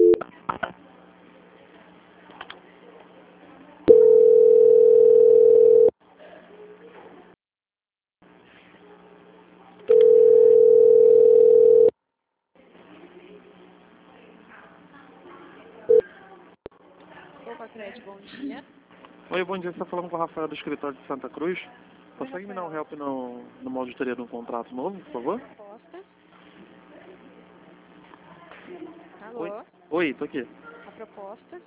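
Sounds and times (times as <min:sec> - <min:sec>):
telephone line tones during a call transfer: 0:00.0 - 0:00.2, 0:03.9 - 0:05.9, 0:09.9 - 0:11.9
speech: 0:19.5 - 0:25.6, 0:30.0 - 0:31.6.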